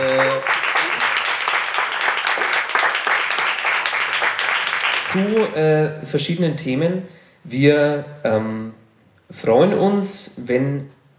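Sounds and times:
audience applause: 0.0 - 5.5
speech: 5.1 - 11.0.

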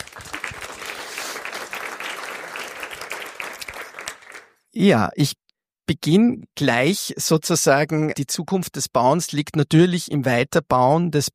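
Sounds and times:
audience applause: 0.0 - 4.6
speech: 4.8 - 11.3.

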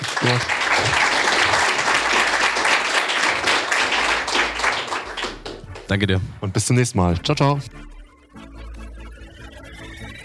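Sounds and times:
audience applause: 0.0 - 6.0
speech: 0.2 - 1.2, 5.9 - 7.9.

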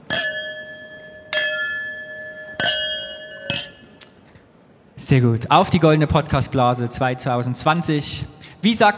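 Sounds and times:
glasses clinking in a toast: 0.0 - 4.2
speech: 5.1 - 8.9.

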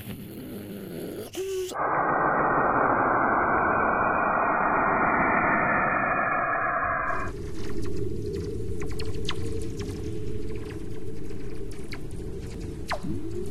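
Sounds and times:
crackling static with scattered clicks: 1.0 - 13.4
warbling whistles and chirps from space radio waves converted to sound: 1.7 - 13.4
steady dense rushing roar from space radio waves: 1.8 - 7.4.

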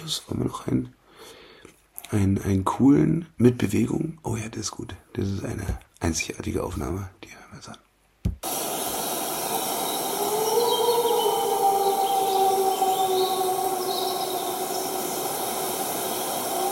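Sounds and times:
speech: 0.1 - 1.0, 2.1 - 8.5
robins singing: 8.9 - 16.6
wolf howling: 9.0 - 16.6.

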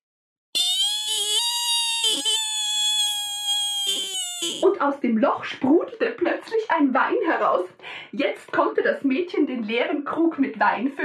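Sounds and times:
long high-pitched squeal: 0.6 - 4.6
speech: 4.5 - 11.0.

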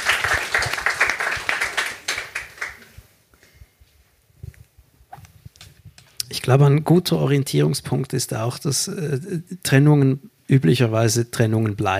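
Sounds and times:
audience applauding: 0.0 - 2.9
speech: 6.4 - 11.9.

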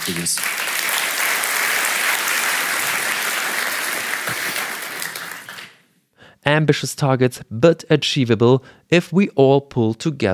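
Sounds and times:
speech: 0.0 - 0.8, 6.5 - 10.3
crowd clapping in dense continuous applause: 0.0 - 5.8.

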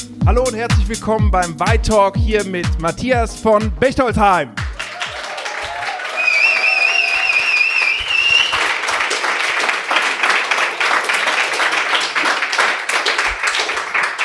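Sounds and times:
speech: 0.3 - 4.6
crowd applauding in a pop-up store in Berlin Mitte: 4.6 - 14.2.

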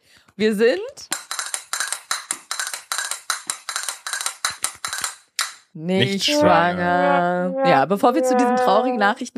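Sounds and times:
speech: 0.4 - 1.2, 5.8 - 9.3
castanets played as suspense effect: 1.1 - 5.7.

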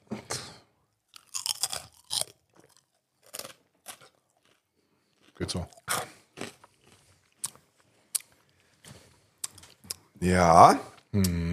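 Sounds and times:
crunchy chewing of a mouthful of food: 1.1 - 10.1
speech: 5.4 - 5.8, 10.2 - 11.5.

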